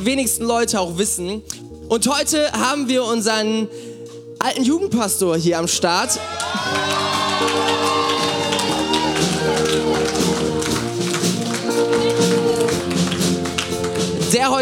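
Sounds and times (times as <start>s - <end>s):
speech: 0.0s - 7.9s, 14.4s - 14.6s
audience cheering: 6.2s - 12.4s
audience applause: 6.2s - 14.1s.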